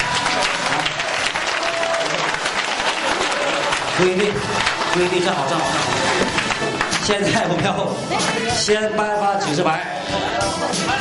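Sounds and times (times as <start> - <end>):
audience applause: 0.0 - 7.6
speech: 4.0 - 10.9.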